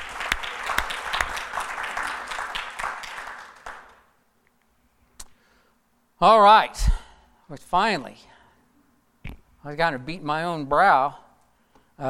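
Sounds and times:
room full of people clapping: 0.0s - 4.2s
speech: 6.2s - 8.3s, 9.6s - 11.2s.

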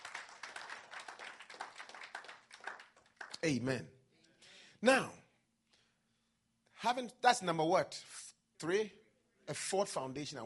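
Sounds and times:
crowd clapping: 0.0s - 3.6s
speech: 3.4s - 4.0s, 4.8s - 5.2s, 6.8s - 10.4s.

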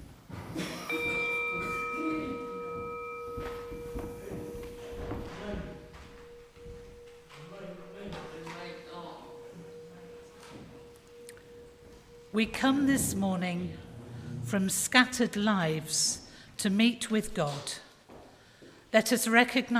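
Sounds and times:
low murmur and rustling: 0.0s - 16.2s
singing bell being struck: 0.8s - 15.3s
speech: 12.4s - 13.8s, 14.5s - 17.8s, 18.9s - 19.7s.

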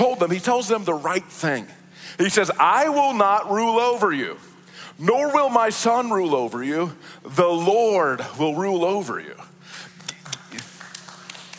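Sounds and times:
speech: 0.2s - 9.5s
audience clapping: 9.9s - 11.5s.

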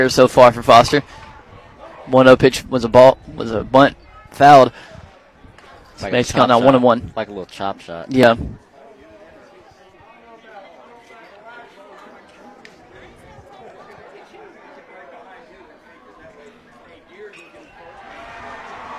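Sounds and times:
speech: 0.0s - 1.2s, 2.1s - 4.9s, 6.0s - 8.6s
crowd cheering at a baseball field: 17.8s - 18.9s.

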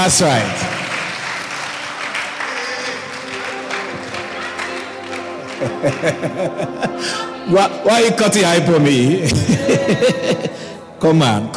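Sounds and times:
speech: 0.0s - 0.7s, 5.6s - 11.5s
audience clapping: 0.0s - 7.0s
laughter: 2.3s - 7.8s, 9.0s - 10.8s.

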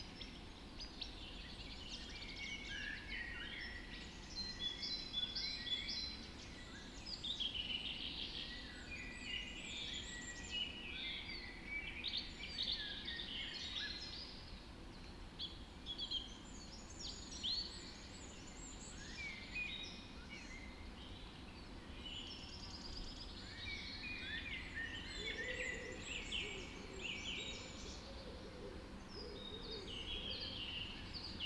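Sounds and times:
birds singing in a dawn chorus: 0.0s - 31.4s
low background noise: 0.0s - 31.4s.

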